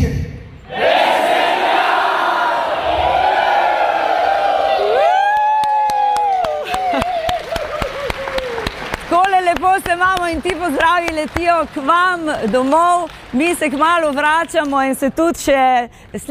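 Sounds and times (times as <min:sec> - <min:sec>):
crowd of revelers cheering and whooping: 0:00.7 - 0:09.0
people clapping: 0:03.2 - 0:15.5
speech: 0:10.3 - 0:16.2.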